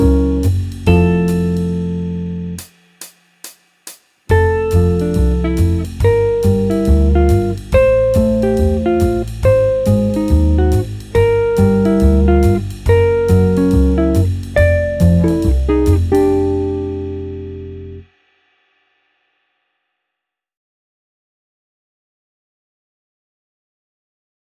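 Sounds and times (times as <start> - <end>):
jazz music: 0.0 - 2.7, 4.3 - 18.0.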